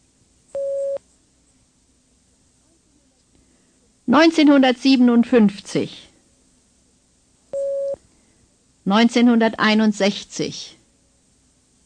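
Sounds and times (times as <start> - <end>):
speech: 4.1 - 6.1, 8.9 - 10.8
beep prompt tone: 7.6 - 8.0.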